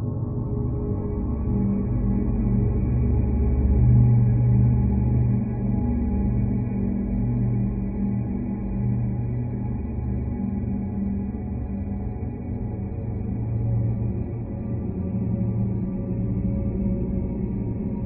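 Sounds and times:
dark horror atmosphere with LFE droning: 0.0s - 18.0s.

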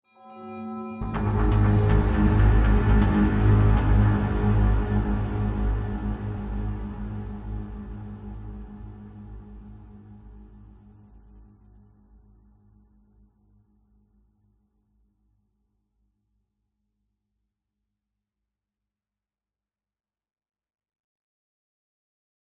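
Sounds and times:
cinematic hit with bell chime: 1.0s - 4.1s
dark sinister dramatic bass arpeggio: 1.0s - 9.8s.

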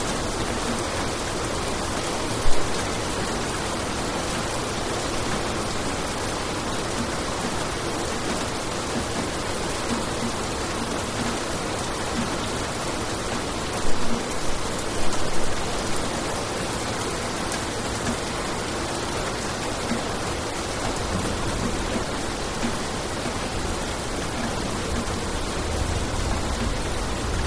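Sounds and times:
heavy rain on concrete in Bali Indonesia: 0.0s - 27.4s
distant thunder in Bali Indonesia: 24.8s - 27.4s.

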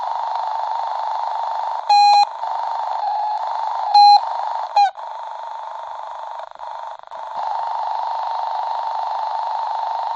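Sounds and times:
walkie-talkie radio interference feedback: 0.1s - 5.1s, 7.4s - 10.1s.

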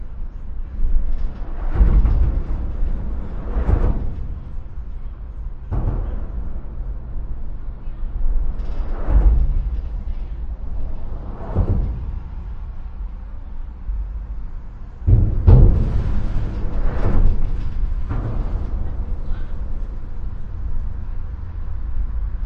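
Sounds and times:
cars, trucks, motorcycles, buses and pickups on a bridge in Vancouver: 0.2s - 22.4s.

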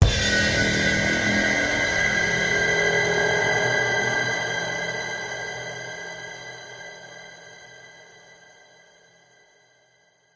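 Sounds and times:
shrill horror jump scare strings: 0.0s - 7.8s.

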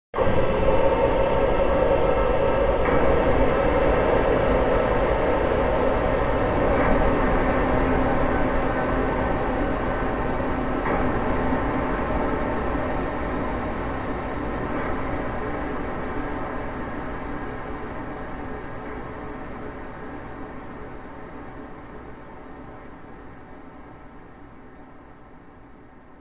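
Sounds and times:
large airy dark ominous cinematic hit: 0.2s - 17.3s.

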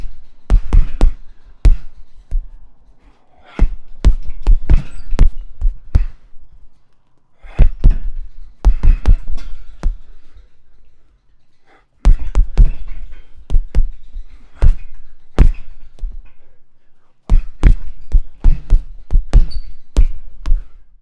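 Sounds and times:
punches on a gym punch bag on chains: 0.0s - 2.6s, 3.5s - 6.3s, 7.4s - 10.4s, 12.0s - 16.3s, 17.3s - 20.9s.

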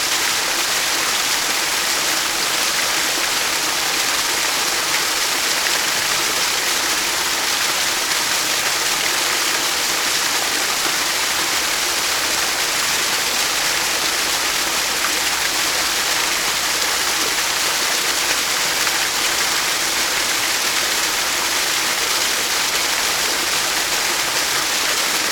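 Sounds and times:
waterfall in a forest: 0.0s - 25.2s.

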